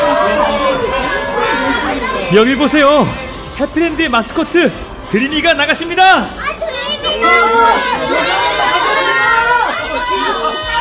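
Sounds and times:
crowd cheering: 0.0 - 2.6, 6.8 - 10.7
speech: 2.3 - 9.0.

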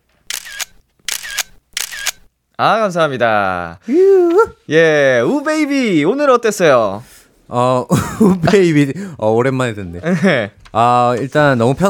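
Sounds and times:
camera shutter clicking: 0.2 - 2.3
speech: 2.6 - 11.8
laughter: 7.9 - 8.9.

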